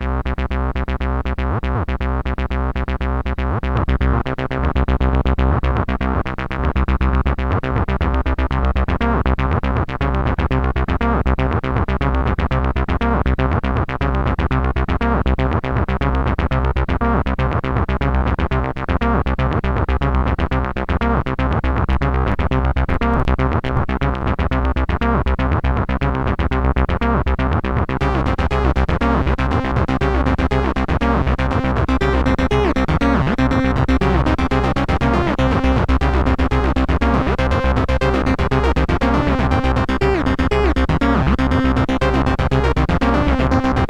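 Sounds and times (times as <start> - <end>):
stereo bassline: 0.0 - 43.8.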